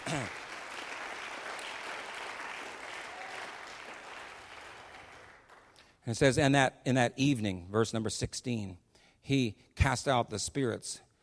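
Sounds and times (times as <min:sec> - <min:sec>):
people clapping hands: 0:00.0 - 0:05.9
speech: 0:06.0 - 0:11.1.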